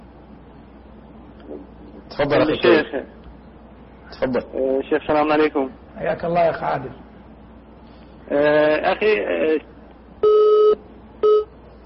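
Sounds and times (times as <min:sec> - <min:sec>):
speech: 0:01.5 - 0:03.2, 0:04.2 - 0:07.0, 0:08.3 - 0:10.4
telephone line tone beeps after a dropped phone-in call: 0:10.2 - 0:11.5.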